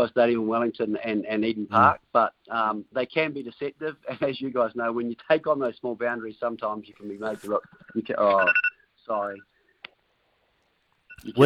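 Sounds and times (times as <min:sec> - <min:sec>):
speech: 0:00.0 - 0:09.5, 0:11.2 - 0:11.4
phone alarm ringing: 0:07.8 - 0:08.8.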